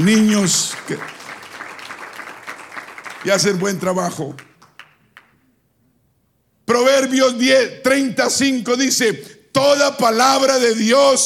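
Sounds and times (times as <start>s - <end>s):
speech: 0.0s - 1.2s, 3.2s - 4.5s, 6.7s - 11.2s
applause from many hands: 0.0s - 5.4s.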